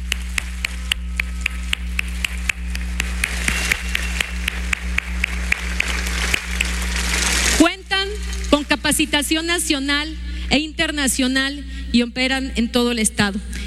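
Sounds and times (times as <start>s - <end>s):
audience applause: 0.0s - 7.6s
speech: 9.0s - 13.6s.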